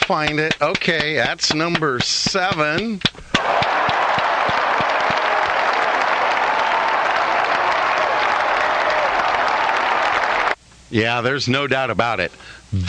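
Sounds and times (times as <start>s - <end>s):
speech: 0.1s - 3.3s, 10.9s - 12.8s
applause sound effect: 3.4s - 10.6s.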